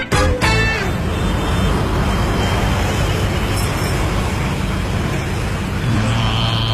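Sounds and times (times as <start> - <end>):
low bus engine drone: 0.0 - 6.7
street traffic rumbling at a bus stop: 0.0 - 6.7.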